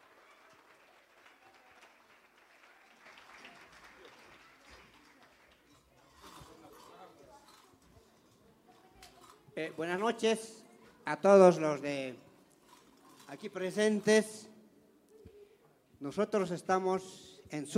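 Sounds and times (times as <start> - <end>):
audience applause: 0.0 - 6.4
speech: 9.6 - 12.2, 13.3 - 14.5, 16.0 - 17.7.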